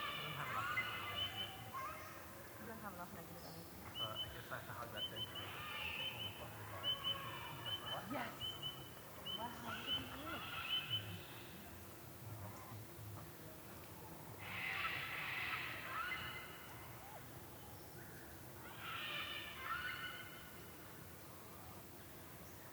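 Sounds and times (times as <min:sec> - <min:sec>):
cockatoos calling at dusk in a creek bed in Australia: 0:00.0 - 0:02.9, 0:03.8 - 0:12.8, 0:14.3 - 0:17.4, 0:18.6 - 0:21.7.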